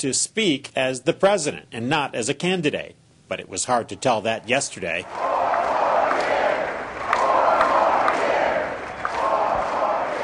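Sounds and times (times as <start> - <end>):
speech: 0.0 - 5.5
Catholic audience of over 2,000 cheering President Bush: 4.5 - 10.2.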